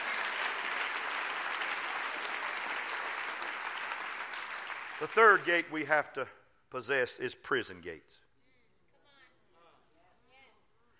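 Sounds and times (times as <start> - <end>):
crowd clapping: 0.0 - 5.8
speech: 5.0 - 8.2.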